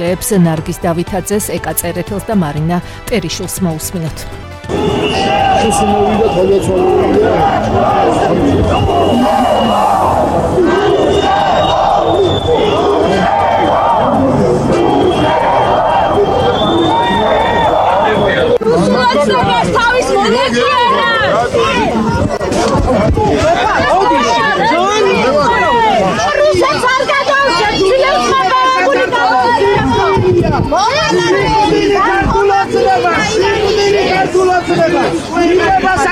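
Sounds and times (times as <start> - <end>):
speech: 0.0 - 11.3, 19.1 - 25.3
protesters shouting and chanting at an April 9 memorial rally: 4.4 - 36.0.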